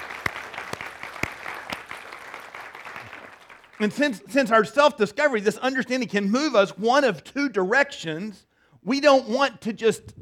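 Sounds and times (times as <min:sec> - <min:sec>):
audience clapping: 0:00.0 - 0:03.9
speech: 0:03.8 - 0:10.2.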